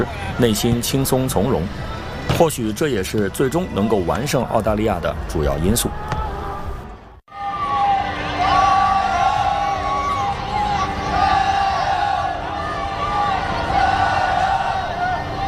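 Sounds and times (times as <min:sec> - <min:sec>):
speech: 0:00.0 - 0:06.0
football fans chanting for China team players in a stadium: 0:06.0 - 0:15.4.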